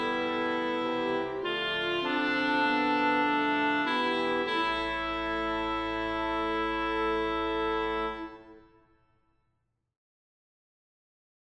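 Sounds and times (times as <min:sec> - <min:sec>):
alto singing a Kyrie: 0:00.0 - 0:08.6.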